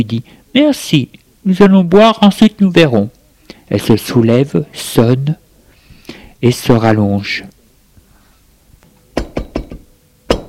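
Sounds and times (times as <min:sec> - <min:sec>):
speech: 0:00.0 - 0:05.4, 0:06.4 - 0:07.6
knocking on a door: 0:09.2 - 0:10.4.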